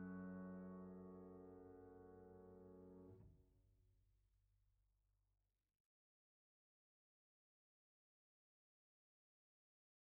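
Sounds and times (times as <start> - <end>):
piano: 0.0 - 3.2.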